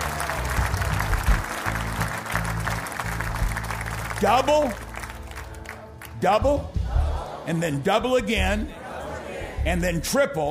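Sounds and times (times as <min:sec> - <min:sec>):
audience clapping: 0:00.0 - 0:06.8
speech: 0:04.2 - 0:04.8, 0:06.2 - 0:06.8, 0:07.4 - 0:08.8, 0:09.6 - 0:10.5.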